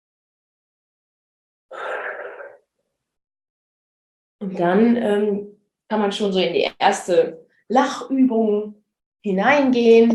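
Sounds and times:
deep inhale and loud exhale: 0:01.7 - 0:02.6
speech: 0:04.4 - 0:10.1.

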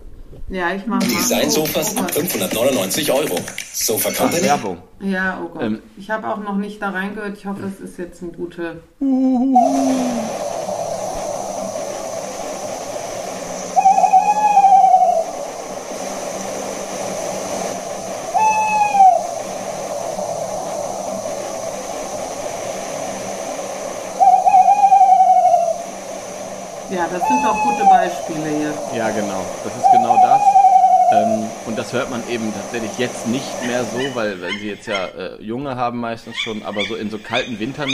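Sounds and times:
steady hiss and low hum: 0:00.0 - 0:08.0, 0:08.8 - 0:37.9
speech: 0:00.4 - 0:10.4, 0:27.1 - 0:30.4, 0:31.1 - 0:37.9
tawny owl hooting song: 0:09.0 - 0:10.8, 0:13.2 - 0:16.6, 0:17.8 - 0:19.9, 0:24.0 - 0:31.8, 0:33.4 - 0:35.2, 0:36.3 - 0:37.9.

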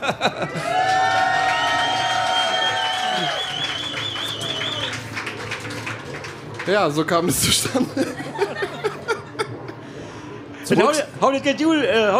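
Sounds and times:
speech: 0:00.0 - 0:00.4, 0:06.7 - 0:08.8, 0:10.7 - 0:12.1
laughter: 0:00.0 - 0:01.3, 0:07.3 - 0:09.8
loud whoops and shouted voices: 0:00.5 - 0:04.9
small crowd clapping: 0:00.5 - 0:08.0
long wavering whistle-like cry: 0:01.7 - 0:04.9.

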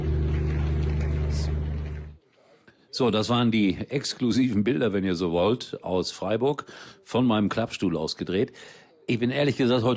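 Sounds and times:
generator hum: 0:00.0 - 0:02.2
speech: 0:03.0 - 0:09.9.

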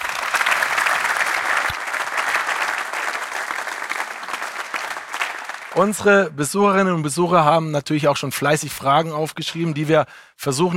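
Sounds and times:
audience applause: 0:00.0 - 0:06.1
speech: 0:05.8 - 0:10.7.

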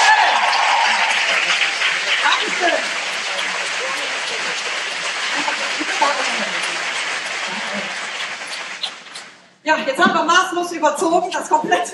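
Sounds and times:
audience applause: 0:00.0 - 0:09.4
speech: 0:09.7 - 0:11.9.

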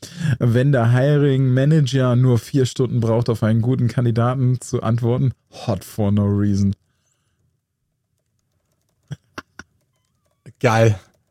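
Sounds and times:
speech: 0:00.4 - 0:06.8, 0:10.6 - 0:11.1
computer keyboard keystrokes typing a message into a Teams channel: 0:08.1 - 0:11.2.

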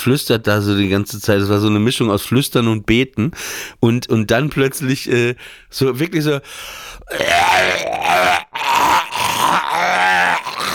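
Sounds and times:
speech: 0:00.0 - 0:10.0
brief gasp: 0:03.4 - 0:03.8, 0:05.4 - 0:05.7, 0:06.4 - 0:07.2
voice imitating a man retching: 0:07.1 - 0:10.7.

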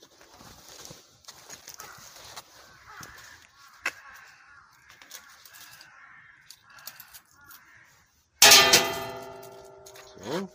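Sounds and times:
quiet outdoor ambience: 0:00.0 - 0:10.5
crow cawing: 0:01.7 - 0:08.1
shrine bell shaken hard: 0:08.4 - 0:10.2.

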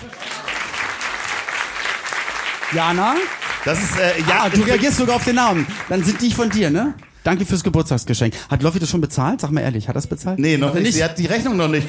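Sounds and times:
audience applause: 0:00.0 - 0:07.1
speech: 0:02.7 - 0:11.8.

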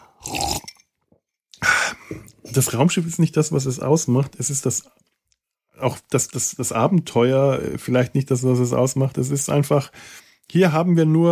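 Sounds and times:
person sipping a drink while talking: 0:00.0 - 0:00.9
speech: 0:02.1 - 0:05.1, 0:05.8 - 0:11.2.

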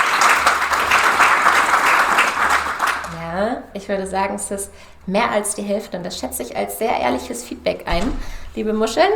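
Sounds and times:
audience clapping: 0:00.0 - 0:03.4
speech: 0:03.8 - 0:09.1.

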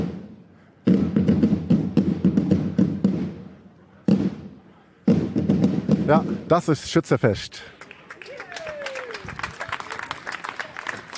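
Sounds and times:
marching drum corps drumming: 0:00.9 - 0:03.5, 0:05.1 - 0:06.7
speech: 0:06.1 - 0:07.8.

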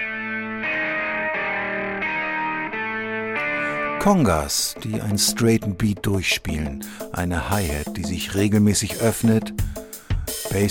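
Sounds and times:
distorted electric guitar playing alone: 0:00.0 - 0:05.5
speech: 0:04.0 - 0:09.8, 0:10.5 - 0:10.7.

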